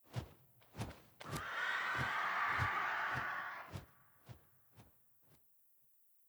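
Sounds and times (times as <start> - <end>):
vulture flying overhead: 1.2 - 4.0.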